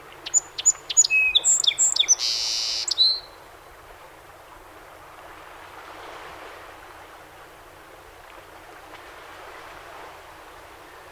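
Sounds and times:
song sparrow song: 0:00.2 - 0:03.3.

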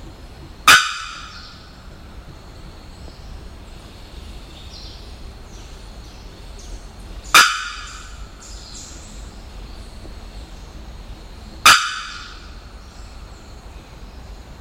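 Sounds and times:
bearded bellbird loud metallic bocks: 0:00.4 - 0:02.4, 0:07.3 - 0:09.3, 0:11.5 - 0:13.2.

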